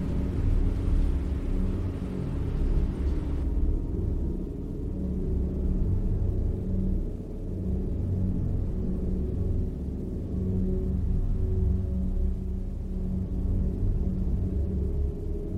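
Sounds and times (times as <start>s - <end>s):
soft hiss: 0.0s - 15.5s
spaceship sleep chamber deep rumbling drone: 0.0s - 15.5s.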